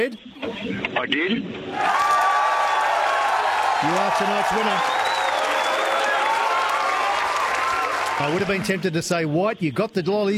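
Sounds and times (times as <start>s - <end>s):
speech: 0.0s - 2.2s, 3.8s - 5.0s, 8.2s - 10.3s
applause for a quiz winner: 1.8s - 9.0s.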